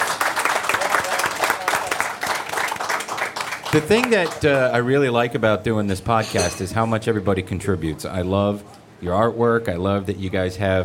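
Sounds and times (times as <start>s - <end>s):
audience round of applause: 0.0s - 4.8s
speech: 3.8s - 10.8s.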